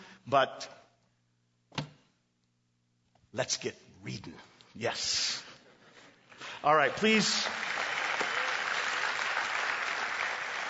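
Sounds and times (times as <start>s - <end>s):
speech: 0.3s - 0.8s, 3.3s - 5.4s, 6.6s - 7.6s
audience applause: 6.6s - 10.6s.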